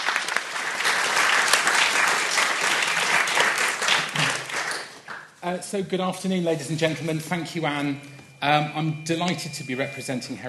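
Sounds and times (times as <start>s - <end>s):
audience applause at a mental health charity event: 0.0s - 5.4s
speech: 5.4s - 10.4s.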